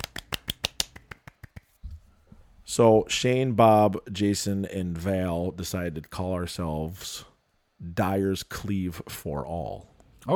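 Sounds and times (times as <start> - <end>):
golf clap of light crisp hand claps: 0.0 - 1.8
speech: 2.7 - 10.3.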